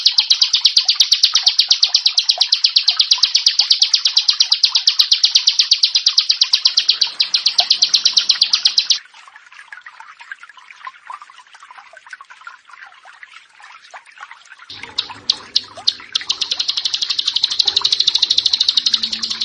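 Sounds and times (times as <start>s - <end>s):
bar-winged prinia song: 0.0s - 9.0s, 14.7s - 19.4s.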